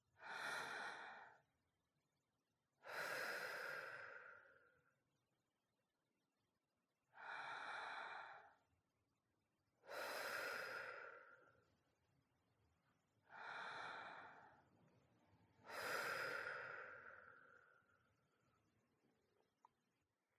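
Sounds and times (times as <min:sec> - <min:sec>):
deep slow breaths to release tension: 0:00.2 - 0:01.5, 0:02.8 - 0:05.0, 0:07.1 - 0:08.7, 0:09.8 - 0:11.8, 0:13.2 - 0:18.4.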